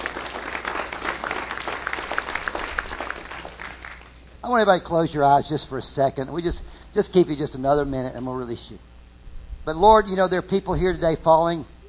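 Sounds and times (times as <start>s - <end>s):
audience clapping: 0.0s - 4.2s
speech: 4.5s - 8.8s, 9.6s - 11.7s.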